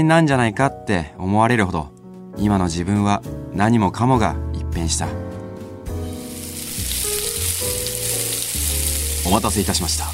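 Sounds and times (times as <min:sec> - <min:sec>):
speech: 0:00.0 - 0:05.4, 0:09.3 - 0:10.1
beef fillet steak sizzling: 0:05.9 - 0:10.1.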